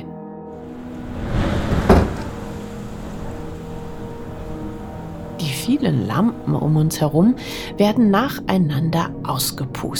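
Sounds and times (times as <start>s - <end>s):
window blown open harshly: 0.6s - 4.3s
sudden wind gust blowing a window open: 0.6s - 5.8s
speech: 5.7s - 9.9s.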